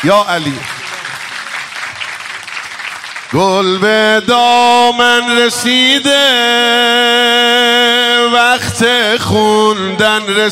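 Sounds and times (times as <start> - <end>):
speech: 0.0 - 0.8, 3.3 - 10.5
crowd clapping along with a song at a religious celebration: 0.0 - 4.8.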